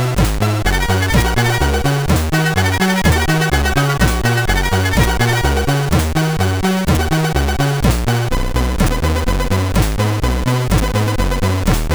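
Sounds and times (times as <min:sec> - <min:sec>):
music on CSG 8580R5 sound chip: 0:00.0 - 0:11.9.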